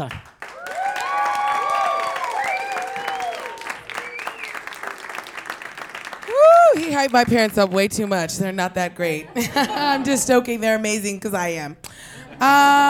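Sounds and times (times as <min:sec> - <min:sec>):
speech: 0:00.0 - 0:00.3, 0:06.8 - 0:12.8
audience applause: 0:00.0 - 0:07.7
audience cheering: 0:00.4 - 0:07.0
laughter: 0:09.2 - 0:10.3.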